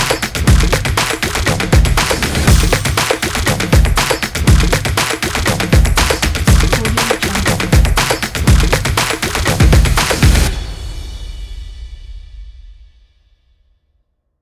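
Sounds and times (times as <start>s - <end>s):
modern stomps and claps: 0.0s - 10.5s.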